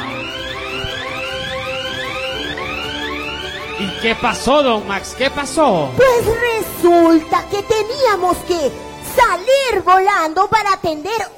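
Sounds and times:
electronic alarm wailing: 0.0s - 8.9s
speech: 3.8s - 11.3s.

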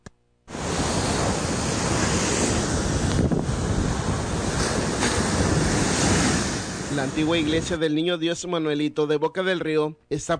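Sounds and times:
strong ocean waves crashing: 0.5s - 7.9s
speech: 7.0s - 10.3s.

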